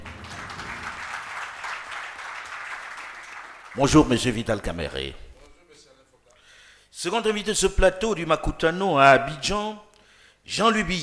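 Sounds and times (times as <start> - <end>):
audience applauding: 0.0 - 4.9
speech: 3.8 - 5.2, 7.0 - 11.0.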